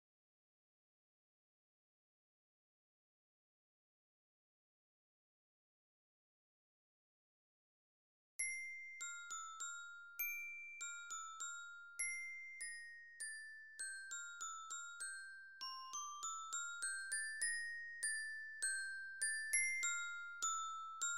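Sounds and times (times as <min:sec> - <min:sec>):
orchestra bells: 0:08.4 - 0:21.1.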